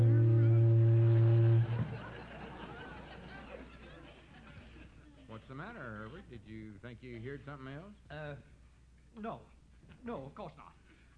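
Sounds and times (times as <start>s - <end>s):
boat whistle: 0.0s - 2.1s
laughter: 1.5s - 5.1s
speech: 6.3s - 8.6s, 9.2s - 10.8s.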